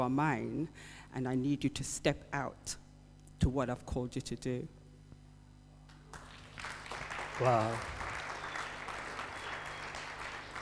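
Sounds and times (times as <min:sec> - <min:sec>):
speech: 0:00.0 - 0:02.8, 0:03.4 - 0:04.8, 0:07.4 - 0:08.0
low steady hum: 0:00.0 - 0:10.6
crowd clapping: 0:05.9 - 0:10.6.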